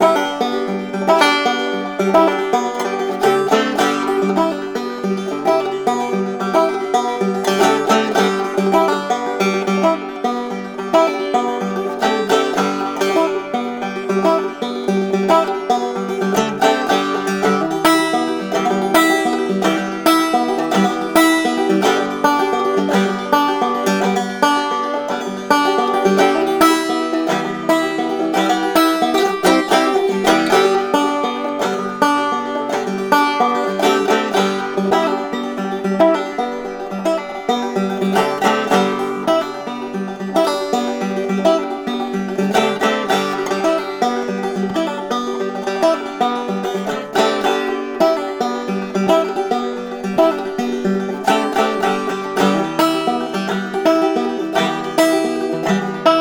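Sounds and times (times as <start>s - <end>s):
banjo ride music: 0.0s - 56.1s.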